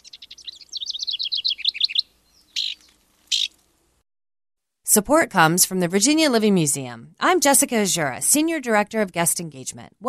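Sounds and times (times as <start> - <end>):
downy woodpecker calling: 0.0 - 3.6
speech: 5.0 - 10.0.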